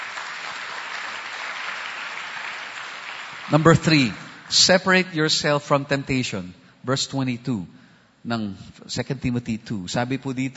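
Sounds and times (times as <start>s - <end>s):
church congregation clapping during a service: 0.0s - 5.4s
speech: 3.4s - 10.5s.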